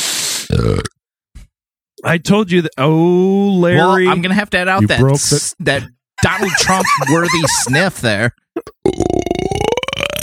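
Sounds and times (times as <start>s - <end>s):
speech: 0.5s - 0.9s, 2.0s - 9.0s
long loud burp: 0.5s - 1.0s, 8.8s - 10.2s
laughter: 6.2s - 8.1s.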